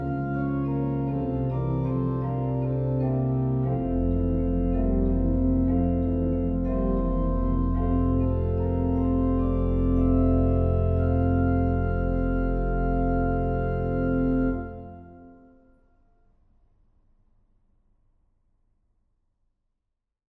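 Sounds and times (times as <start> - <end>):
organ prelude in F: 0.0 - 15.6.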